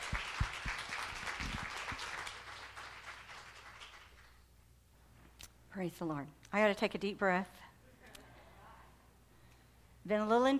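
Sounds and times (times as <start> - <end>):
audience applause welcoming a speaker: 0.0 - 4.4
speech: 5.8 - 7.7, 10.1 - 10.5.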